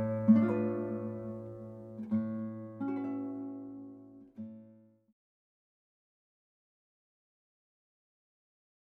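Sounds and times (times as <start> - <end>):
guitar playing in a recital: 0.0 - 4.9.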